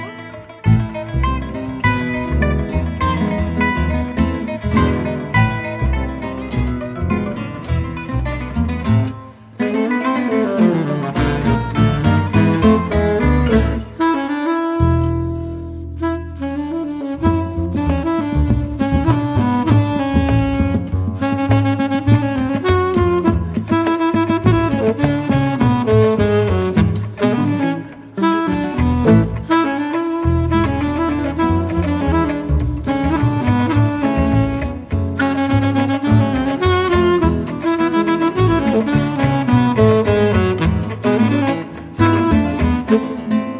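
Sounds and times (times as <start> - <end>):
tango ensemble playing: 0.3 - 43.5.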